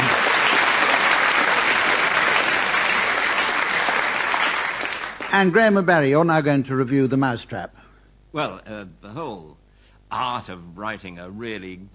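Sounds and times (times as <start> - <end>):
audience applause: 0.0 - 5.7
speech: 5.3 - 11.9.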